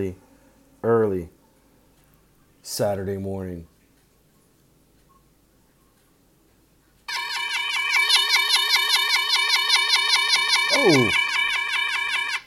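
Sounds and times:
speech: 0.0s - 0.2s, 0.8s - 1.4s, 2.6s - 3.7s, 10.8s - 11.2s
siren sound effect: 7.1s - 12.4s.

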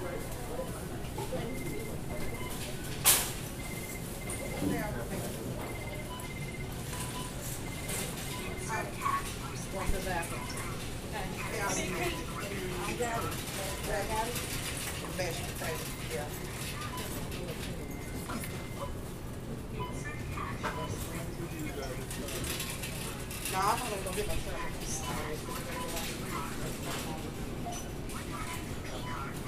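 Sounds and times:
shoppers murmuring and talking in a Food Lion aisle: 0.0s - 29.4s
self-checkout machine beeps: 1.2s - 10.8s, 15.2s - 19.1s, 19.8s - 21.2s, 22.5s - 29.4s.

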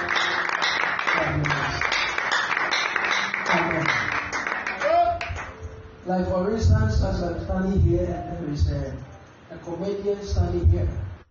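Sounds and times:
crowd clapping hands: 0.0s - 5.6s
speech: 6.1s - 11.0s.

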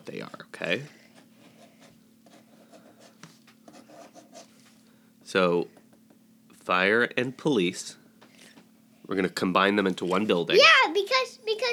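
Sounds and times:
speech: 0.0s - 1.0s, 5.3s - 5.7s, 6.7s - 8.0s, 9.1s - 11.7s
pen strokes on paper drawing boxes: 3.7s - 4.5s.

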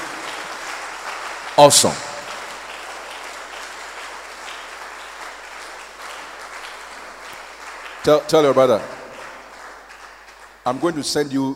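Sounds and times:
crowd clapping: 0.0s - 11.5s
speech: 1.6s - 2.1s, 8.0s - 9.0s, 10.6s - 11.5s.

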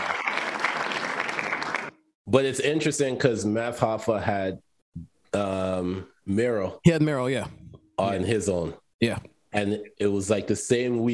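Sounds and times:
applause: 0.0s - 2.1s
speech: 2.3s - 11.1s.

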